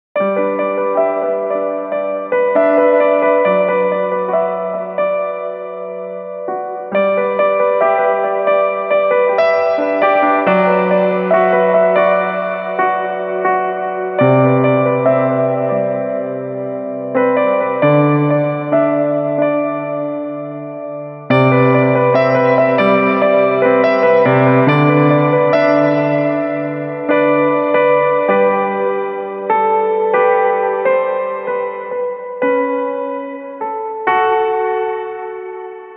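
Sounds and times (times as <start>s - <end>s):
piano: 0.2s - 35.9s.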